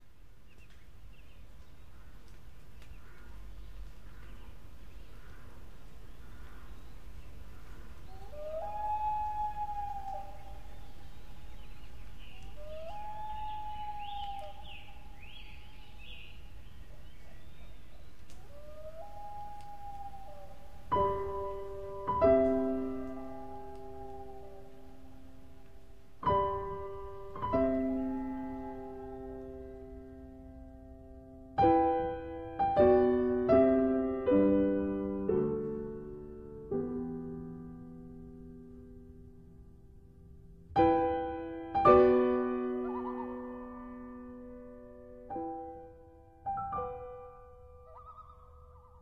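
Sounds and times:
loons calling: 0:01.6 - 0:30.7, 0:40.8 - 0:44.2, 0:46.8 - 0:49.0
prominent piano: 0:07.8 - 0:49.0.

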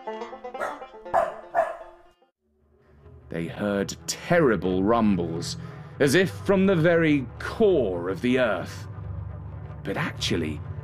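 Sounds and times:
dogs barking: 0:00.6 - 0:02.0
speech: 0:03.3 - 0:08.9, 0:09.8 - 0:10.7.

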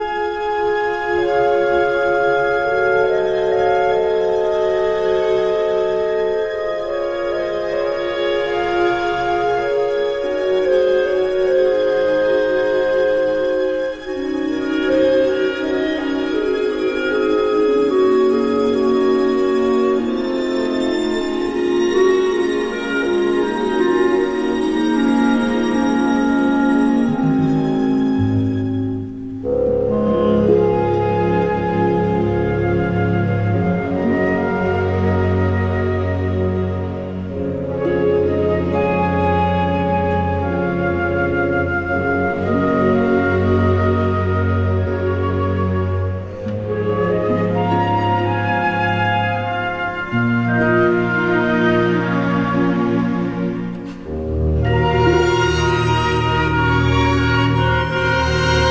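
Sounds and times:
symphony orchestra playing: 0:00.0 - 0:58.6.

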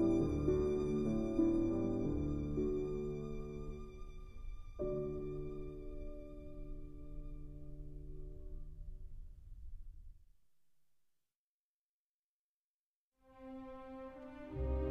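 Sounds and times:
violin: 0:00.0 - 0:07.8, 0:13.3 - 0:14.8
piano: 0:00.0 - 0:10.1, 0:13.2 - 0:14.8.

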